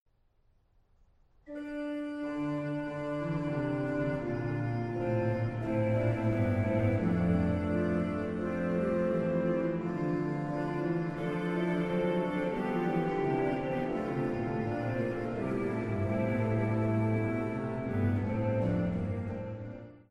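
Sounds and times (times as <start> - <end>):
organ verse: 1.5 - 20.0.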